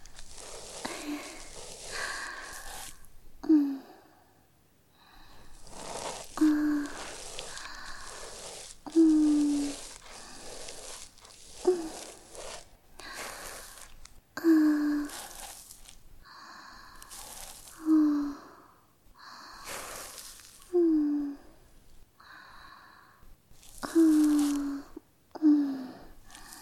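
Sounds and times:
looped breathing: 0.0s - 3.1s, 4.9s - 21.6s, 22.2s - 26.6s
ear cleaning: 0.0s - 3.2s, 5.2s - 18.3s, 19.5s - 20.8s, 23.5s - 25.0s, 26.2s - 26.6s.

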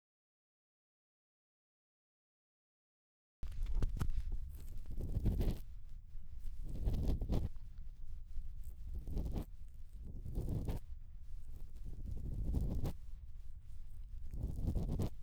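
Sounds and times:
bamboo ear pick at the right ear canal entrance: 3.4s - 15.2s.

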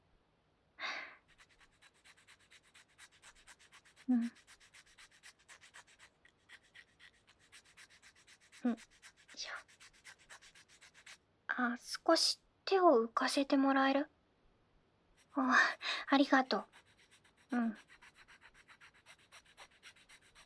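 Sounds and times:
file sanding a surface: 1.3s - 11.2s, 16.6s - 20.4s
speech: 4.1s - 4.4s, 8.6s - 8.9s, 11.6s - 14.2s, 15.4s - 16.7s, 17.5s - 17.9s.

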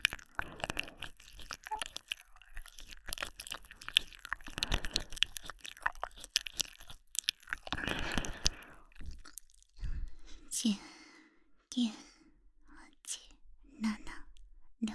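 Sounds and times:
ear licking: 0.0s - 9.8s
whispering: 11.8s - 14.9s.

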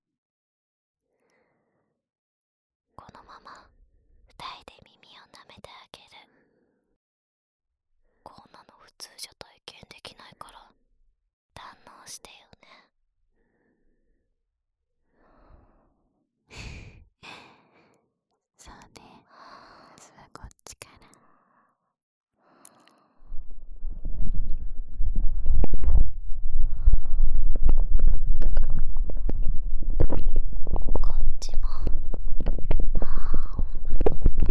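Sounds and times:
intense ear licking: 24.1s - 34.5s.

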